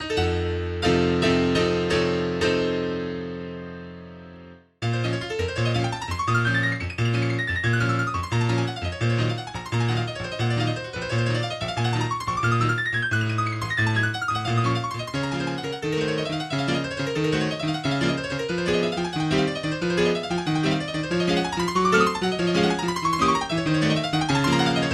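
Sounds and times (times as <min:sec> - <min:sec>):
prelude: 0:00.0 - 0:24.9.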